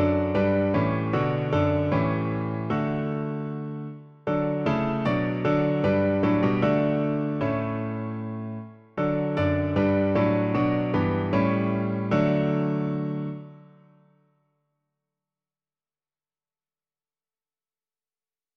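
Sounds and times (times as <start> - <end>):
piano: 0.0 - 14.3.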